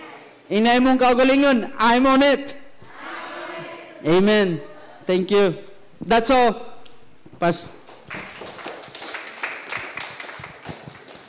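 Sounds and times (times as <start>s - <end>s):
speech: 0.5s - 2.6s, 4.0s - 6.7s, 7.4s - 8.3s
audience applause: 7.9s - 11.2s.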